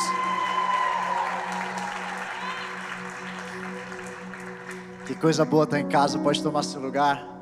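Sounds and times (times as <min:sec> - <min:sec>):
audience applauding and cheering: 0:00.0 - 0:05.8
speech: 0:05.1 - 0:07.3.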